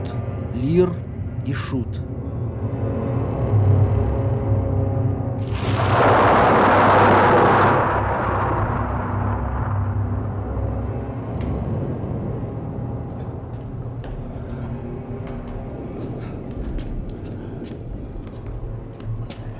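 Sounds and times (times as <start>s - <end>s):
speech: 0.6s - 3.1s
storm: 2.9s - 15.2s
thunder: 5.4s - 14.0s.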